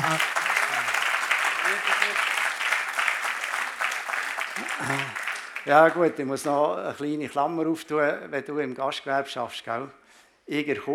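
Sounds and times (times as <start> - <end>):
applause: 0.0 - 6.6
speech: 5.6 - 10.9.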